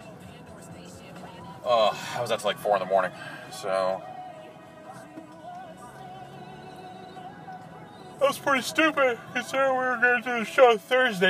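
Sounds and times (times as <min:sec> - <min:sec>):
cars passing on a street: 0:00.0 - 0:11.2
speech: 0:01.6 - 0:04.1, 0:08.2 - 0:11.2.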